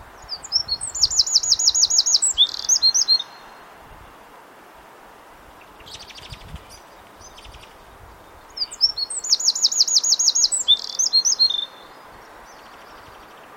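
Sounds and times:
Eurasian wren singing: 0.2s - 3.6s, 5.6s - 13.4s.

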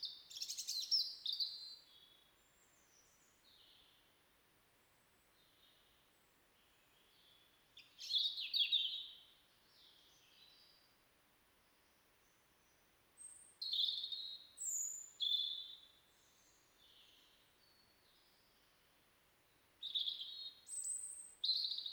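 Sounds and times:
European robin thin high song: 0.0s - 4.0s, 6.6s - 10.9s, 13.2s - 18.6s, 19.8s - 21.9s.

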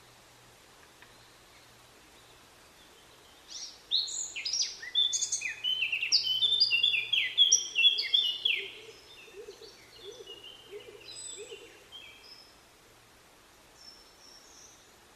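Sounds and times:
Eurasian blackcap whistled song: 3.5s - 12.4s.

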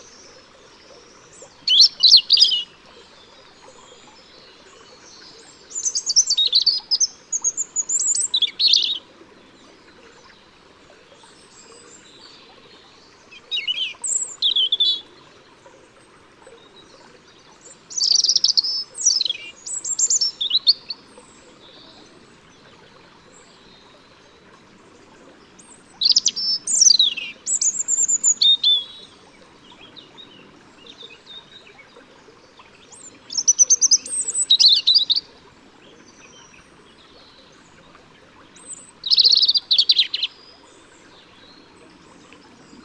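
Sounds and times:
European robin song: 1.2s - 2.7s, 5.0s - 9.0s, 13.3s - 15.0s, 17.8s - 22.0s, 25.6s - 31.6s, 32.9s - 35.3s, 38.6s - 40.5s.

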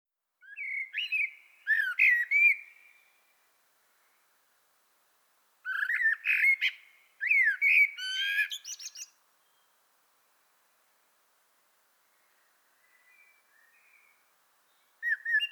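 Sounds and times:
Common blackbird Turdus merula singing: 0.4s - 3.0s, 5.7s - 9.7s, 12.8s - 15.4s.

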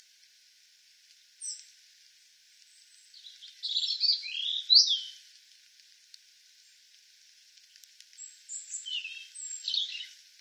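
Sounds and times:
European robin singing: 2.9s - 5.2s, 8.5s - 10.2s
faint clicks: 5.3s - 8.3s.

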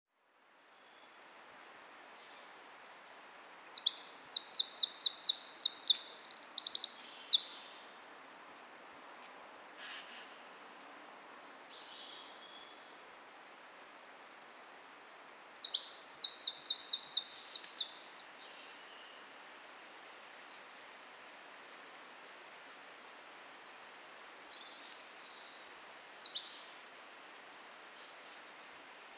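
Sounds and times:
hiss: 0.1s - 29.1s
Eurasian wren song: 2.2s - 8.2s, 14.3s - 18.3s, 24.3s - 26.8s.

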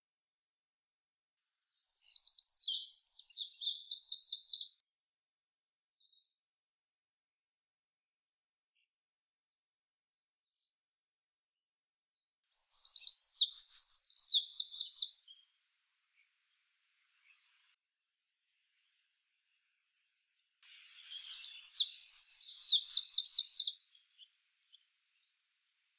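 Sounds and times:
Eurasian wren singing shrill fast trills: 1.6s - 4.8s, 12.5s - 15.4s, 20.7s - 24.2s.

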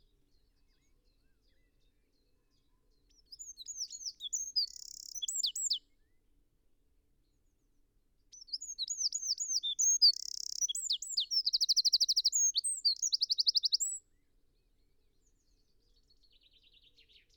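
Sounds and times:
Eurasian wren singing trills: 3.1s - 5.8s, 8.3s - 14.0s.

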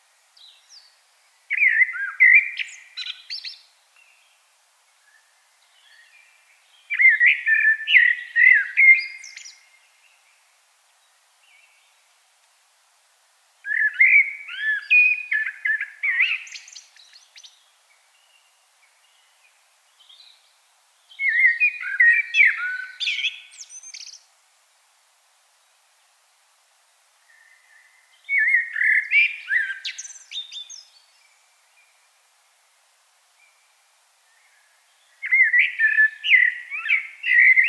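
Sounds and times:
common blackbird song: 1.5s - 4.3s, 5.1s - 9.8s, 13.6s - 19.4s, 21.1s - 24.2s, 27.3s - 31.9s, 34.3s - 37.6s.

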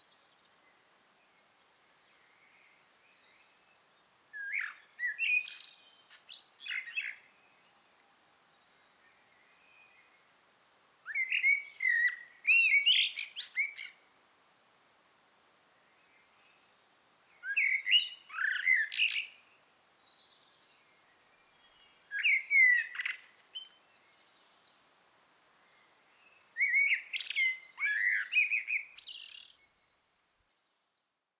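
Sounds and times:
light background hiss: 0.0s - 31.3s
common blackbird song: 4.4s - 7.8s, 11.1s - 14.2s, 17.4s - 19.4s, 21.6s - 24.5s, 26.3s - 29.7s.

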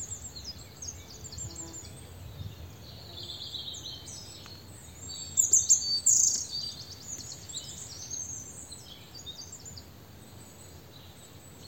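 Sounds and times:
European robin song: 0.0s - 11.6s.

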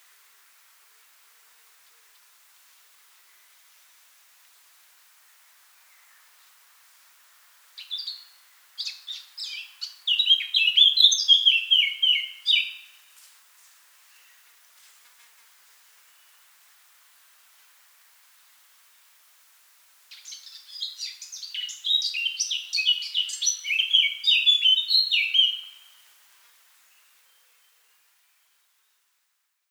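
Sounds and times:
Eurasian blackcap singing: 7.8s - 13.0s, 20.1s - 26.0s.

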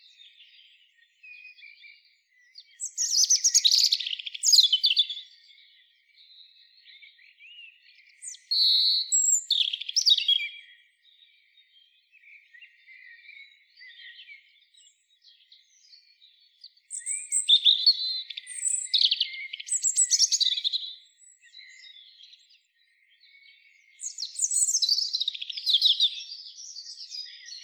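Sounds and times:
European robin singing: 0.0s - 27.6s.

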